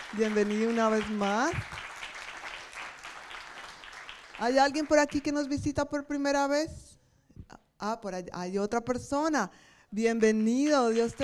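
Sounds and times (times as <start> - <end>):
applause: 0.0 - 5.5, 10.9 - 11.2
speech: 0.1 - 1.8, 4.4 - 6.9, 7.8 - 11.2.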